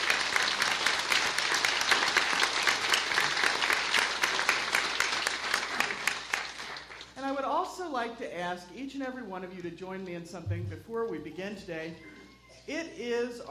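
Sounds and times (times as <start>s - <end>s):
audience applause: 0.0s - 7.2s
speech: 8.1s - 12.1s, 12.7s - 13.5s.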